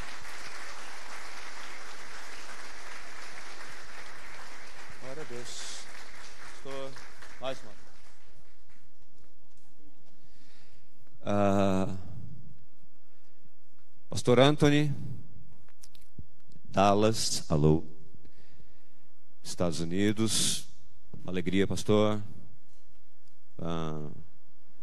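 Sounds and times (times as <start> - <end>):
audience applauding: 0.0 - 9.2
speech: 14.3 - 15.1, 16.8 - 17.9, 19.5 - 20.7, 21.3 - 22.4, 23.6 - 24.2.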